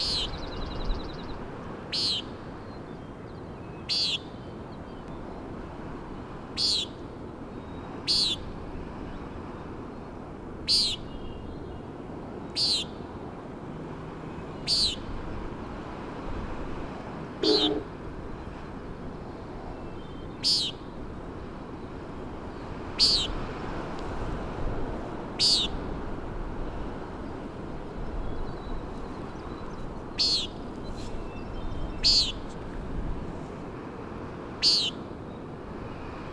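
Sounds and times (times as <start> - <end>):
common nighthawk peenting: 0.0 - 1.1, 1.9 - 2.4, 3.8 - 4.4, 6.6 - 7.0, 8.0 - 8.4, 10.7 - 11.5, 12.5 - 13.0, 14.6 - 15.1, 17.4 - 18.0, 20.0 - 20.8, 22.9 - 23.4, 25.4 - 25.8, 28.7 - 32.5, 34.6 - 35.0
gusty wind: 0.0 - 36.3
ocean surf: 0.0 - 36.3.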